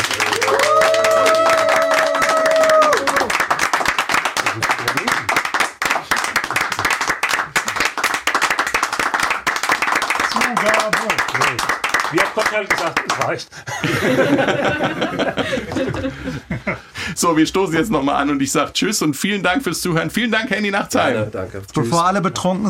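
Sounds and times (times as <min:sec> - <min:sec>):
group applauding in a room: 0:00.0 - 0:16.7
speech: 0:13.3 - 0:14.4, 0:16.7 - 0:22.6
laughter: 0:13.5 - 0:17.0.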